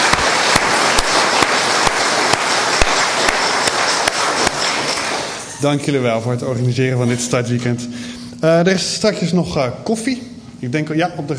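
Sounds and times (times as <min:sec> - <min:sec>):
applause: 0:00.0 - 0:05.5
speech: 0:05.6 - 0:11.3.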